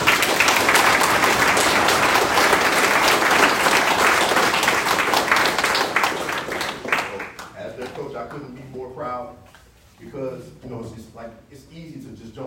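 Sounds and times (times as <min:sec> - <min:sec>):
audience applause: 0:00.0 - 0:08.0.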